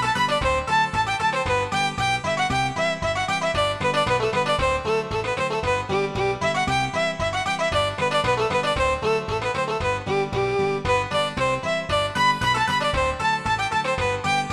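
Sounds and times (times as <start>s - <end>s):
polka MIDI music: 0.0s - 14.5s.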